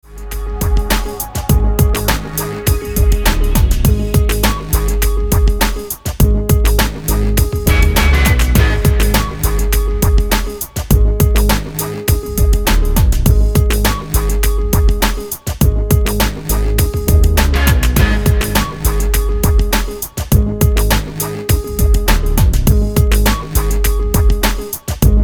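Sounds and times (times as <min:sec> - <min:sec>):
instrumental music: 0:00.0 - 0:25.2.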